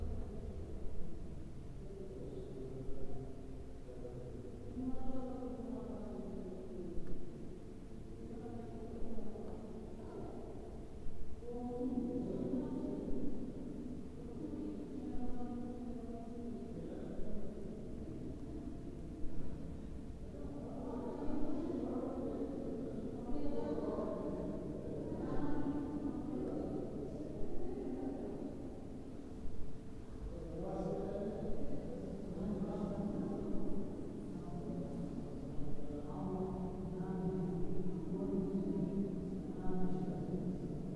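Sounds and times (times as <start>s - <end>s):
mosque ambience in Duisburg: 0.0s - 40.9s.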